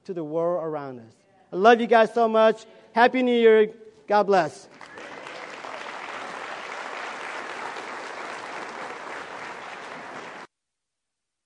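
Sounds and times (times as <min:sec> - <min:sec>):
speech: 0:00.0 - 0:05.1
audience applauding: 0:04.7 - 0:10.5.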